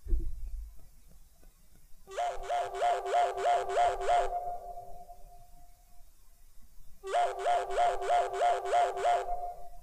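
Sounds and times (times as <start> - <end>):
electronic phone ringtone mimicking a police siren: 2.1 - 5.1, 7.1 - 9.8.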